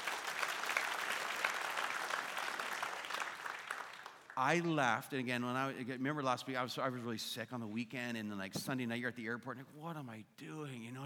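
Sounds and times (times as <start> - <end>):
audience applause: 0.0 - 4.4
speech: 4.4 - 11.0.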